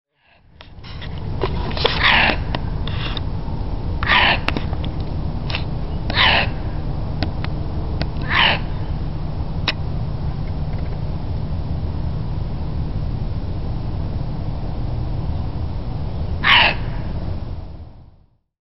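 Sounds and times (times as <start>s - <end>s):
low rumbling background noise: 0.2s - 18.4s
fox barking: 1.7s - 3.2s, 4.0s - 4.7s, 5.5s - 6.9s, 8.1s - 9.0s, 16.4s - 17.2s.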